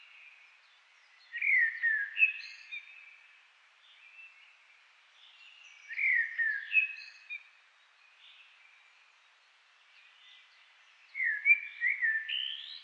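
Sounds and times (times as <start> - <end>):
common blackbird Turdus merula singing: 1.3 - 3.0, 5.8 - 7.4, 11.2 - 12.8.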